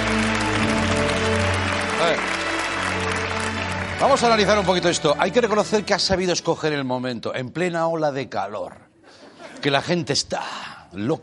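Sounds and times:
applause: 0.0s - 5.9s
speech: 4.0s - 8.9s, 9.6s - 11.2s.

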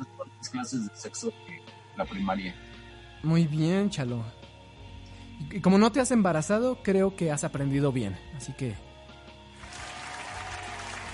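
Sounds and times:
speech: 0.5s - 4.4s, 5.4s - 8.9s
applause: 9.6s - 11.1s.

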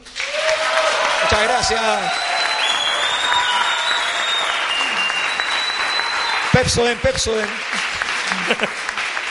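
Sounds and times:
audience applause: 0.0s - 9.2s
speech: 1.3s - 2.2s, 6.6s - 8.8s
laughter: 7.6s - 9.2s.

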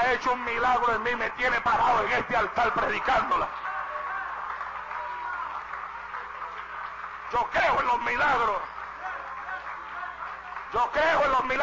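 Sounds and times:
speech: 0.2s - 3.6s, 7.3s - 8.7s, 10.7s - 11.6s
audience applause: 1.8s - 11.6s.

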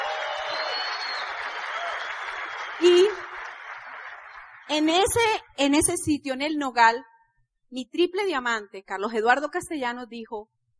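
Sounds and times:
audience applause: 0.0s - 4.8s
speech: 2.8s - 3.2s, 4.7s - 7.1s, 7.7s - 10.5s.

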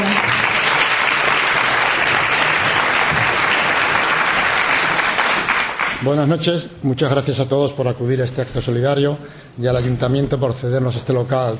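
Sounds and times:
audience clapping: 0.0s - 6.3s
speech: 6.0s - 11.5s.

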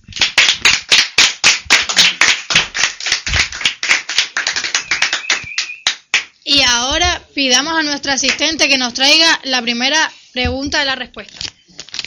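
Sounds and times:
audience applause: 0.2s - 5.8s
speech: 7.4s - 11.4s.

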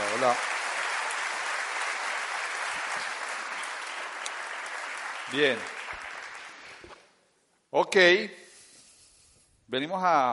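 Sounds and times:
audience applause: 0.0s - 7.0s
speech: 0.2s - 0.5s, 5.3s - 5.8s, 7.7s - 8.4s, 9.7s - 10.3s.

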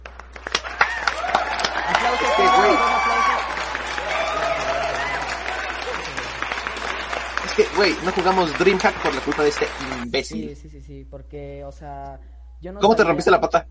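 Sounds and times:
applause: 0.0s - 10.2s
cheering and whoops: 0.6s - 7.3s
excited voices shouting: 1.2s - 6.2s
speech: 1.9s - 2.8s, 7.6s - 13.6s.

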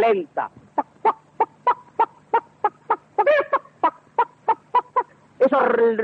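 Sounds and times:
speech: 0.0s - 0.9s, 5.5s - 6.0s
voice imitating farmyard poultry clucking: 0.8s - 5.2s.

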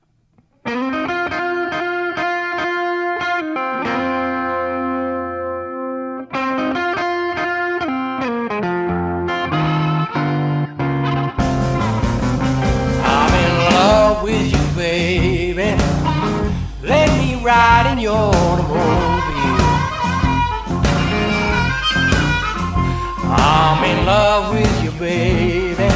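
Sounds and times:
loud overdriven electric guitar: 0.3s - 25.9s
blues band song with vocals and guitar: 0.7s - 25.9s.

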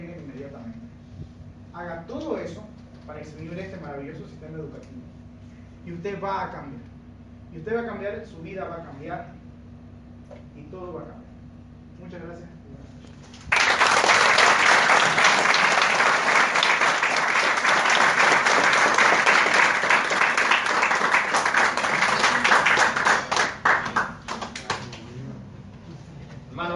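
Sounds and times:
speech: 1.8s - 5.2s, 5.8s - 6.9s, 7.5s - 9.4s, 10.3s - 11.2s, 12.0s - 12.6s
audience applause: 13.5s - 25.0s.

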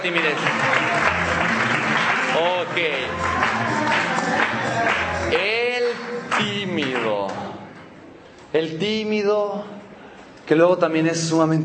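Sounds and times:
speech: 0.0s - 1.0s, 2.4s - 7.4s, 8.5s - 9.8s, 10.5s - 11.6s
audience applause: 0.0s - 7.2s.

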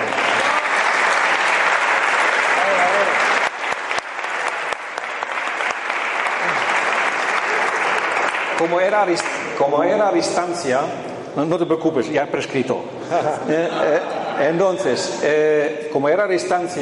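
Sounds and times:
audience applause: 0.0s - 9.4s
speech: 8.6s - 16.8s
laughter: 13.0s - 14.7s.

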